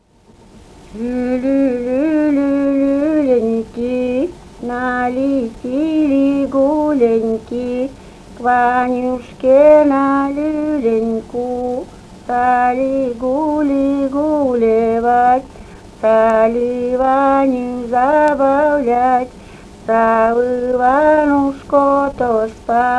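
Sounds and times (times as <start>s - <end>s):
lullaby singing: 0.9s - 22.9s.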